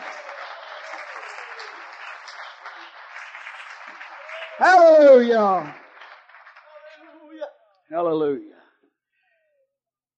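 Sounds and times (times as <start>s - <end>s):
audience clapping hands: 0.0s - 7.5s
speech: 4.6s - 5.8s, 8.0s - 8.6s.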